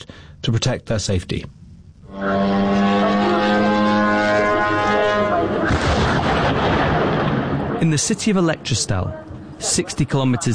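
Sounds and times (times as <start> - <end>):
speech: 0.4 - 1.6, 7.8 - 10.5
Ukrainian drone engine buzz: 2.0 - 5.7
rumbling explosion of drone crashing into a warehouse: 5.4 - 8.6.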